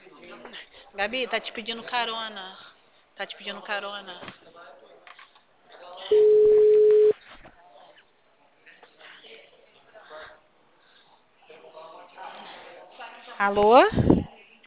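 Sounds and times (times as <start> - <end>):
speech: 0.4 - 4.8, 6.1 - 6.4, 13.4 - 14.1
telephone busy tone: 6.1 - 7.1.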